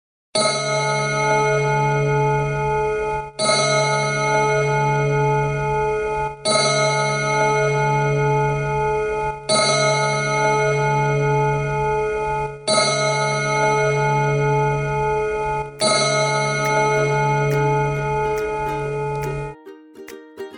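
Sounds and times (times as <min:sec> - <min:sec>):
old large clock bell striking six in the snowfield castle: 0:00.4 - 0:19.6.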